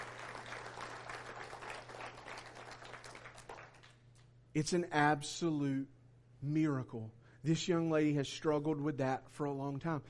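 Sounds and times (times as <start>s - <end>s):
audience applause: 0.0s - 4.0s
low electrical hum: 0.0s - 10.0s
speech: 4.5s - 10.0s.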